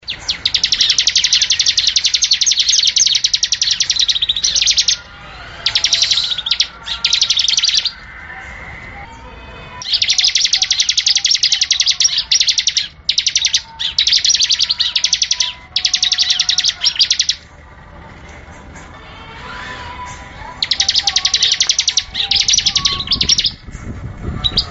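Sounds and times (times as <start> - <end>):
Bar-winged Prinia giving quick high chips: 0.0 - 17.6, 18.2 - 23.8.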